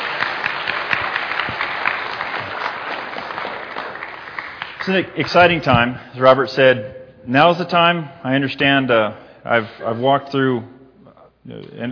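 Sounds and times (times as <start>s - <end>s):
church congregation clapping to welcome a newly baptized member: 0.0s - 5.9s
speech: 4.8s - 10.8s, 11.4s - 11.8s.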